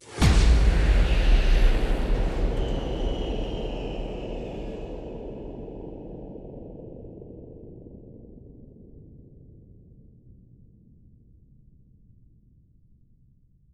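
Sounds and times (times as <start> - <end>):
bass drum kick with reverb: 0.0 - 6.7.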